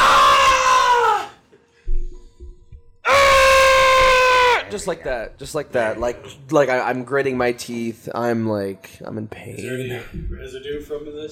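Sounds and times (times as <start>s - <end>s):
person imitating a pained scream: 0.0s - 1.4s, 3.1s - 4.7s
speech: 4.8s - 11.3s.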